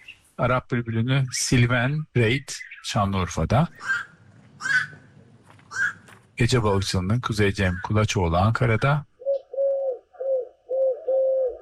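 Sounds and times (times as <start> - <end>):
speech: 0.4 - 4.8, 6.4 - 9.1
dove cooing in Istanbul: 3.8 - 5.1, 9.2 - 11.6.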